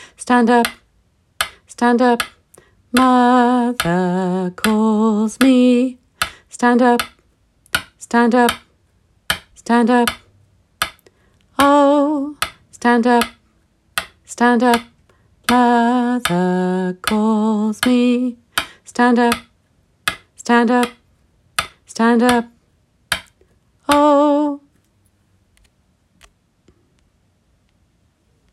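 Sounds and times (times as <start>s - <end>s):
tenor singing: 0.0s - 0.8s, 1.4s - 7.2s, 7.8s - 8.7s, 9.3s - 10.3s, 11.5s - 13.4s, 14.2s - 19.5s, 20.1s - 21.0s, 21.6s - 23.2s, 23.8s - 24.7s.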